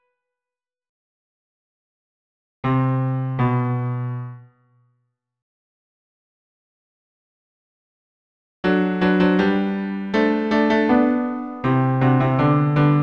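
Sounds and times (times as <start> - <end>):
piano bass accompaniment: 2.6 - 4.4, 8.6 - 13.0.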